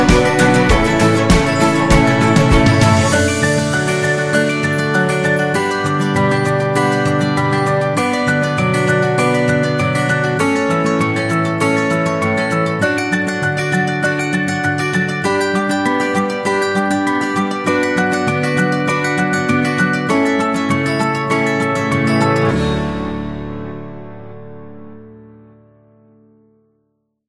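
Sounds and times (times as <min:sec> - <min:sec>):
acoustic guitar: 0:00.0 - 0:26.7.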